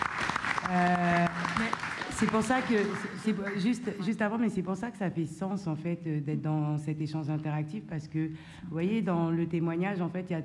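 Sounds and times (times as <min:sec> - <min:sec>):
audience applause: 0:00.0 - 0:04.0
speech: 0:00.7 - 0:10.4.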